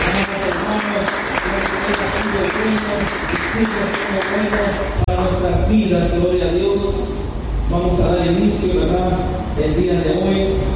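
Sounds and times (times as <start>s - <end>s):
audience clapping: 0.0s - 5.1s
speech: 2.6s - 10.7s.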